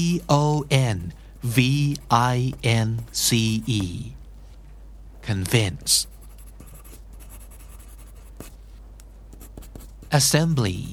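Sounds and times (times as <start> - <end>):
pencil tip writing on paper: 0.0 - 4.1, 6.1 - 8.6, 9.3 - 10.9
speech: 0.0 - 4.2, 5.2 - 6.1, 10.1 - 10.9.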